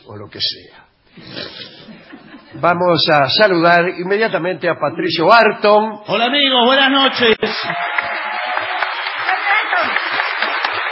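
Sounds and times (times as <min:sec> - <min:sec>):
speech: 0:00.1 - 0:07.9
audience applause: 0:07.2 - 0:10.9.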